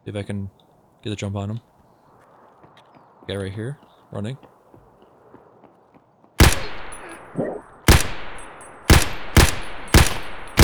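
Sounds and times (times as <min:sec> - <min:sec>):
speech: 0:00.0 - 0:01.7, 0:03.2 - 0:04.5
gunshots in a video game shooter: 0:06.4 - 0:10.6.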